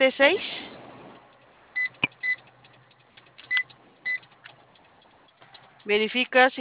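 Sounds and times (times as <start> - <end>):
speech: 0.0 - 0.6, 5.8 - 6.5
keypad beeps while entering a code: 1.8 - 2.5, 3.4 - 4.3.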